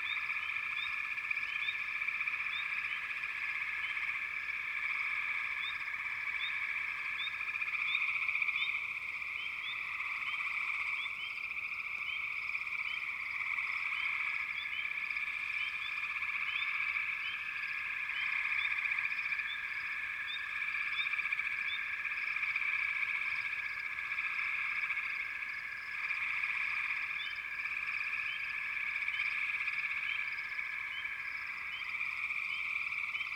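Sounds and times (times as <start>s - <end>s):
frog chorus: 0.0s - 33.3s.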